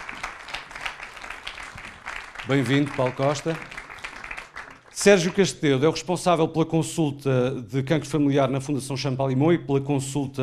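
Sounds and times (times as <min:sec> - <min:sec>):
audience applause: 0:00.0 - 0:05.4
speech: 0:02.5 - 0:03.8, 0:05.0 - 0:10.4.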